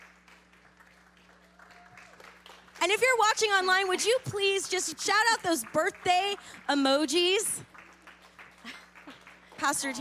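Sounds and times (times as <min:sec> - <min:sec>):
audience applause: 0:00.0 - 0:02.9, 0:05.1 - 0:10.0
speech: 0:02.8 - 0:07.6, 0:09.6 - 0:10.0.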